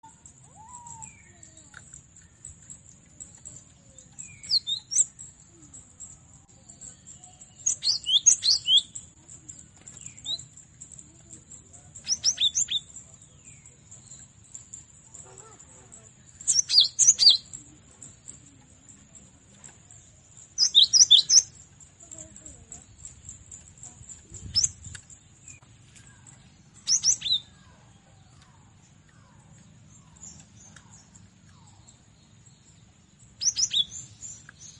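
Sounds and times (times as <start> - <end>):
cinereous tit whistling song: 0.0 - 1.7, 2.3 - 9.1, 12.0 - 14.6, 16.4 - 17.7, 20.6 - 21.6, 26.7 - 27.6, 33.4 - 34.7.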